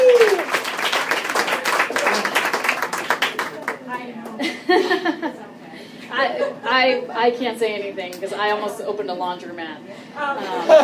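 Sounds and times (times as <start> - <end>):
audience applause: 0.0 - 3.9
laughter: 4.4 - 5.5, 10.3 - 10.8
speech: 6.8 - 10.8.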